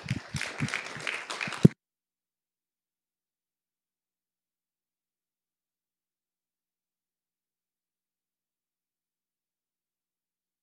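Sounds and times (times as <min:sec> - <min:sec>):
audience applause: 0:00.0 - 0:01.8.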